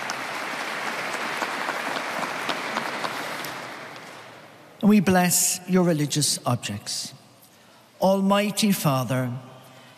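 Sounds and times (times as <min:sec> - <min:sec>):
applause: 0:00.0 - 0:04.4
speech: 0:04.8 - 0:07.2, 0:08.0 - 0:09.9.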